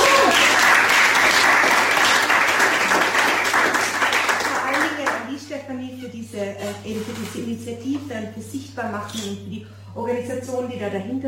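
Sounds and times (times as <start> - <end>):
audience applause: 0.0 - 5.2
speech: 7.4 - 11.2.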